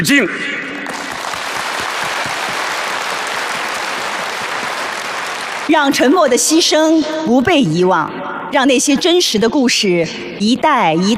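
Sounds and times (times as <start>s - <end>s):
speech: 0.0s - 0.7s, 5.7s - 11.1s
large crowd applauding warmly: 0.8s - 6.1s.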